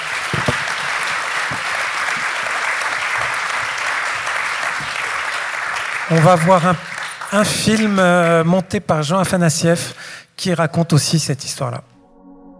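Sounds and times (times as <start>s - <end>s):
audience applause: 0.0s - 8.5s
speech: 6.1s - 11.9s.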